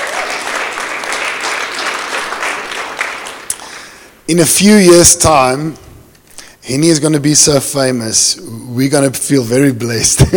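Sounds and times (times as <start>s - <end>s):
audience applause: 0.0s - 3.8s
speech: 4.3s - 5.8s, 6.7s - 10.3s.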